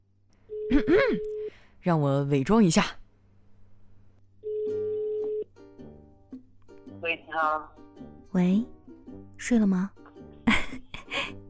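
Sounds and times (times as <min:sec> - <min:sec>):
low hum: 0:00.0 - 0:11.4
speech: 0:00.7 - 0:03.0, 0:07.4 - 0:08.8, 0:09.4 - 0:10.0
telephone ringback tone: 0:04.4 - 0:05.5.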